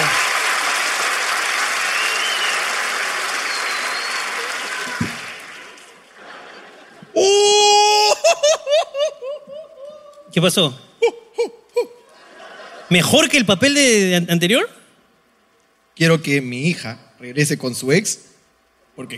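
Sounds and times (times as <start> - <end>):
audience applause: 0.0 - 6.8
laughter: 5.9 - 10.3, 11.0 - 13.1
speech: 10.4 - 10.9, 12.9 - 14.8, 16.0 - 18.3, 19.0 - 19.1.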